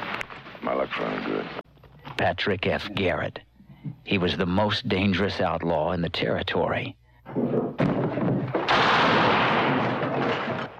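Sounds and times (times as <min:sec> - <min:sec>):
speech: 0:00.6 - 0:01.6, 0:02.2 - 0:07.9
booming gunshots in a western movie trailer about Pat Garrett: 0:07.8 - 0:10.7.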